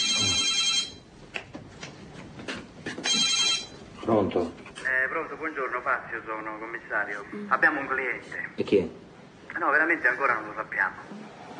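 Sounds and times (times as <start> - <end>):
telephone ringing: 0.0 - 1.1, 3.0 - 3.8
speech: 4.1 - 4.6, 5.2 - 11.3.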